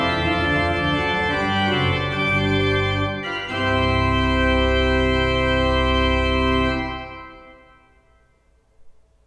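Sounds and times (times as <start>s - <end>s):
Prengel 14 II P pipe organ: 0.0s - 8.5s.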